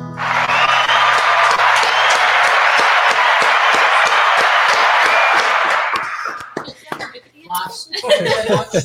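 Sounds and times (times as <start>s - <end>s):
crowd cheering and clapping: 0.2s - 7.2s
laughter: 7.9s - 8.8s.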